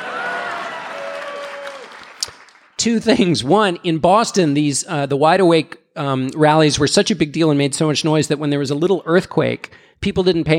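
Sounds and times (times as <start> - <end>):
audience applause: 0.0 - 2.8
speech: 2.8 - 10.5.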